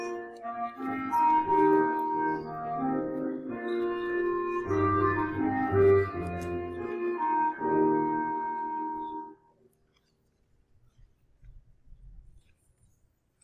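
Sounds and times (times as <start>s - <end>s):
person playing an instrument: 0.0s - 9.4s.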